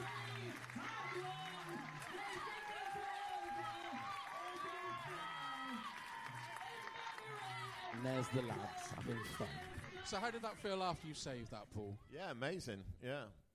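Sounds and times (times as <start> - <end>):
crowd round of applause: 0.0 - 10.8
speech: 8.0 - 13.4.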